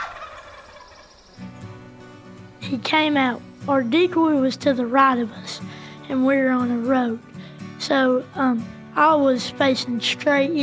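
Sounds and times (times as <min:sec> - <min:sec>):
wild turkey gobbling: 0:00.0 - 0:01.4
speech: 0:02.6 - 0:10.6.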